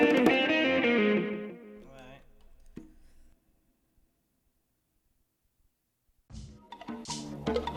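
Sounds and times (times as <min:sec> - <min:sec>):
instrumental music: 0:00.0 - 0:03.3.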